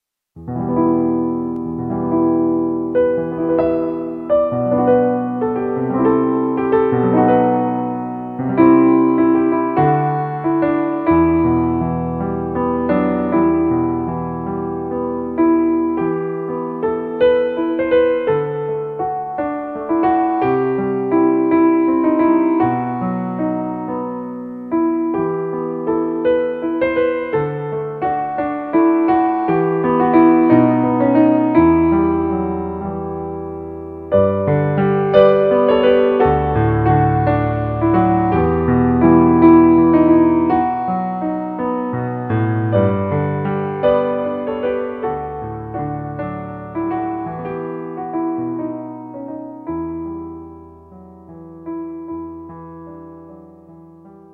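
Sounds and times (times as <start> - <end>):
piano piece: 0.3 - 54.3.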